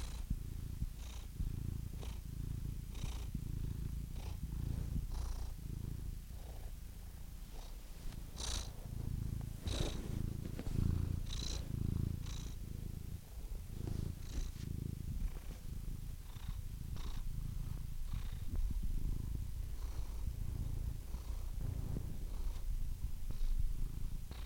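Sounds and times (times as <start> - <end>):
domestic cat purring: 0.0 - 24.4.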